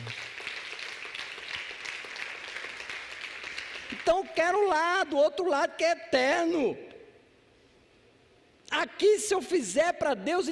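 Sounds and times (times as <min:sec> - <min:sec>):
audience applauding: 0:00.0 - 0:04.2
speech: 0:04.1 - 0:06.9, 0:08.8 - 0:10.5.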